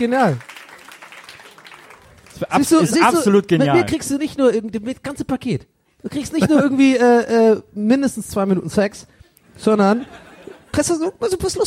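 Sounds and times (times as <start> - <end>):
speech: 0.0 - 0.5, 2.4 - 11.6
applause: 0.0 - 3.2
laughter: 6.1 - 7.1, 9.8 - 11.1.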